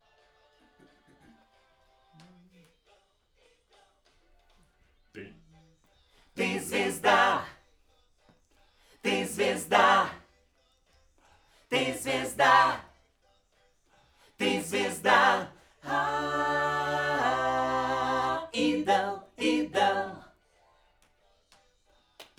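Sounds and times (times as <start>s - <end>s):
backing vocals on AKG microphone: 6.4s - 7.5s, 9.0s - 10.2s, 11.7s - 12.8s, 14.4s - 20.3s.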